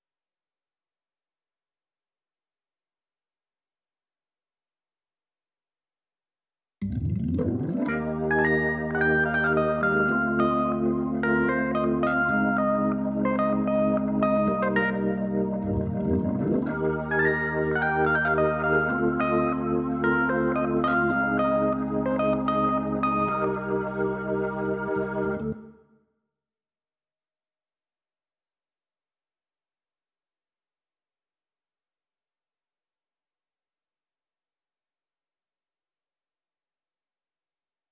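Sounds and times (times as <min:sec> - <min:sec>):
keyboard playing: 0:06.8 - 0:25.7.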